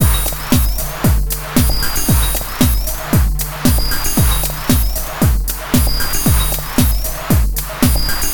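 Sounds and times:
115 BPM synth stab loop: 0:00.0 - 0:08.3.

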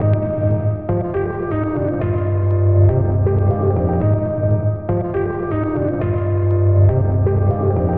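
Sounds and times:
piano loop: 0:00.0 - 0:07.9.

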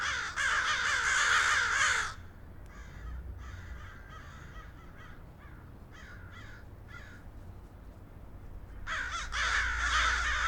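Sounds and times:
crows cawing: 0:00.0 - 0:07.2, 0:08.9 - 0:10.4.

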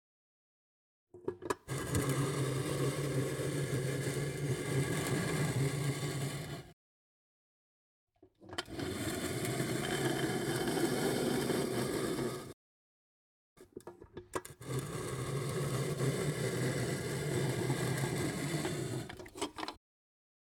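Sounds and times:
metal box sliding: 0:01.7 - 0:06.7, 0:08.6 - 0:12.6, 0:14.6 - 0:19.7.

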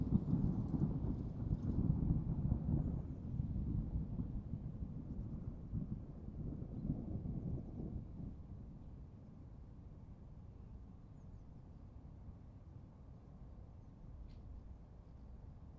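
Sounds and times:
violent thunderstorm: 0:00.0 - 0:08.9.

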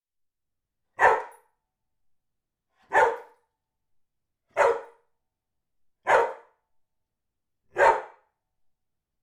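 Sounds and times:
dog barking: 0:01.0 - 0:01.5, 0:02.8 - 0:03.4, 0:04.5 - 0:05.0, 0:06.0 - 0:06.6, 0:07.7 - 0:08.3.

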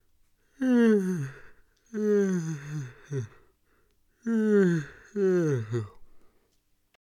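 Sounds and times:
man yawning: 0:00.6 - 0:03.4, 0:04.3 - 0:06.0.

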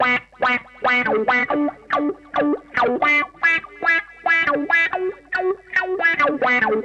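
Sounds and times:
guitars: 0:00.0 - 0:06.8.

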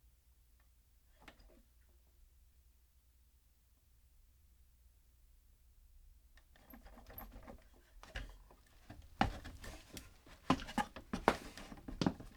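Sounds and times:
wooden ladder handling: 0:08.1 - 0:12.3.

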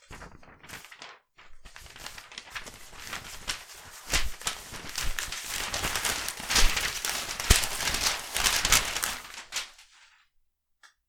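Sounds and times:
papers shuffling: 0:00.0 - 0:10.2.

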